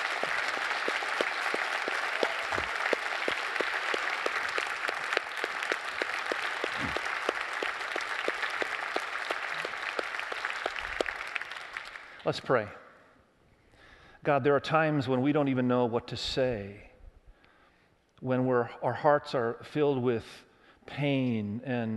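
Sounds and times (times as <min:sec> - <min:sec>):
audience applauding: 0:00.0 - 0:12.2
speech: 0:12.3 - 0:12.8, 0:14.2 - 0:16.9, 0:18.2 - 0:21.9.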